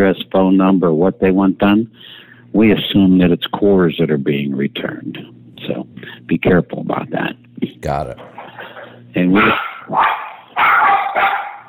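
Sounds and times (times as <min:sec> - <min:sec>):
speech: 0:00.0 - 0:08.3, 0:09.1 - 0:11.3
dog barking at someone at the door: 0:10.0 - 0:11.6.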